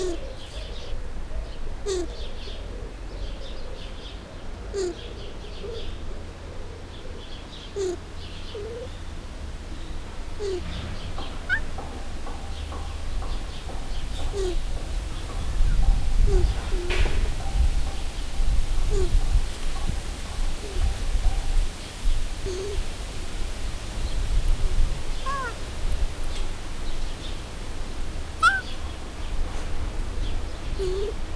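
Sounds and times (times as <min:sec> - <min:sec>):
ring-tailed lemurs calling to each other at a zoo: 0:00.0 - 0:29.4, 0:30.2 - 0:31.2.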